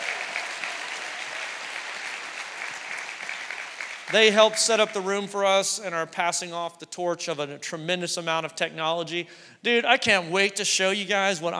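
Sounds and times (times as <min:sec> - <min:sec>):
audience applause: 0:00.0 - 0:04.8
speech: 0:04.1 - 0:11.5.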